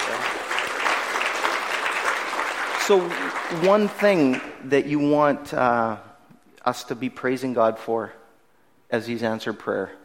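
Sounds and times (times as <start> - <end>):
audience applause: 0.0 - 4.5
speech: 2.9 - 8.2, 8.9 - 10.0.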